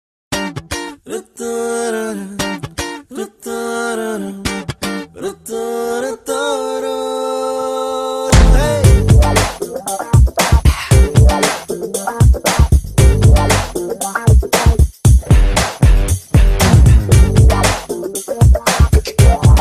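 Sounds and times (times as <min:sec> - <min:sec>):
Telugu background music ringtone: 0:08.3 - 0:19.6.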